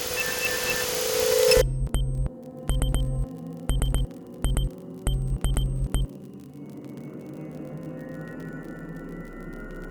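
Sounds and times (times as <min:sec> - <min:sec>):
morse code beeps: 0:00.2 - 0:06.1.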